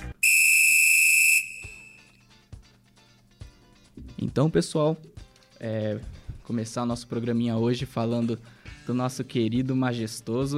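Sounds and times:
referee whistle starting a football match: 0:00.2 - 0:02.2
speech: 0:04.3 - 0:10.5.

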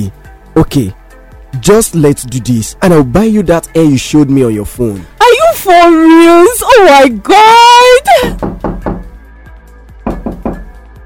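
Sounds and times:
speech: 0:00.0 - 0:08.5
knocking on a door: 0:08.3 - 0:09.2, 0:10.0 - 0:10.9.

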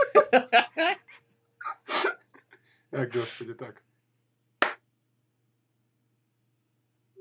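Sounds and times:
laughter: 0:00.0 - 0:03.4
speech: 0:03.0 - 0:03.9
single hand clap for audio sync: 0:04.6 - 0:04.8.

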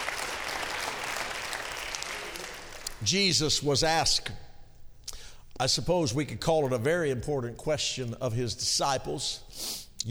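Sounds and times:
audience clapping hands: 0:00.0 - 0:03.0
speech: 0:03.0 - 0:04.4, 0:05.6 - 0:10.0.

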